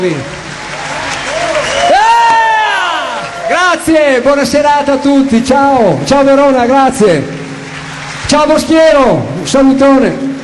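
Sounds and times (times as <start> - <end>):
speech: 0.0 - 0.4, 3.5 - 7.4, 8.3 - 10.2
audience clapping at an evening event in Verona: 0.0 - 5.2, 5.8 - 10.1
loud rising whoop: 0.8 - 3.6.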